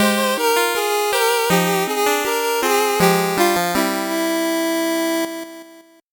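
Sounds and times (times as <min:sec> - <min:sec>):
slow 8-bit jingle: 0:00.0 - 0:05.6.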